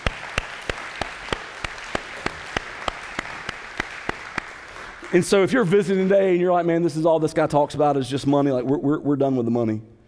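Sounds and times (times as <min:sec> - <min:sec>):
audience applause: 0:00.0 - 0:06.2
sharp evenly spaced claps: 0:00.0 - 0:06.4
speech: 0:05.1 - 0:09.9.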